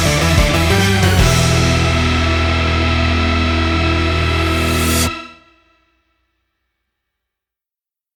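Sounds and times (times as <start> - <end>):
instrumental music: 0.0 - 5.7.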